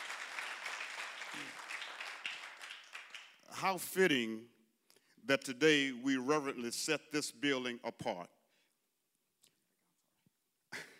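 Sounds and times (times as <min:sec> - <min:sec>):
audience applause: 0:00.0 - 0:03.7
speech: 0:03.6 - 0:04.6, 0:05.2 - 0:08.4.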